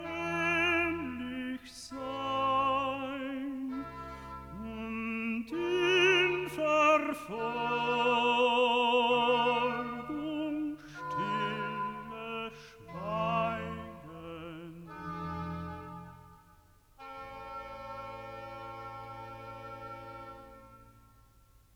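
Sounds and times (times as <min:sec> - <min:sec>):
tenor singing recitative: 0:00.0 - 0:16.3.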